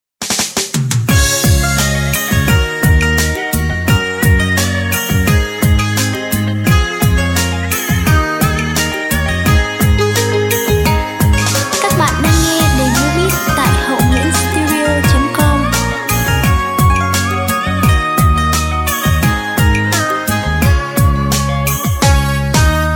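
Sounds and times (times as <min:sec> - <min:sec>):
music beat playback: 0:00.2 - 0:22.9.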